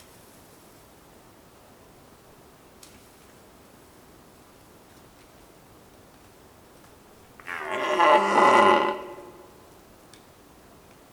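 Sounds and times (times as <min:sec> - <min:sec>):
red deer roar: 0:07.4 - 0:09.6.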